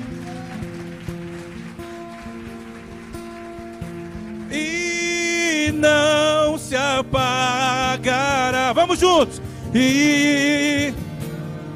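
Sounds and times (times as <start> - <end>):
audience applauding loudly: 0.0 - 7.4
speech: 4.5 - 4.9, 7.0 - 11.0.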